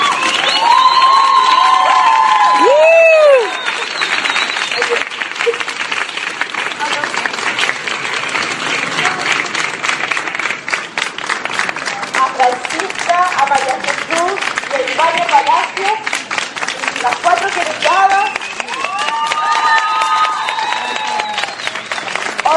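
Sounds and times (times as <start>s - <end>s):
whistles: 0.0s - 1.6s, 3.1s - 5.0s, 18.1s - 19.1s, 19.8s - 22.2s
crowd cheering: 0.0s - 7.7s, 16.7s - 22.5s
crowd applauding: 0.0s - 22.5s.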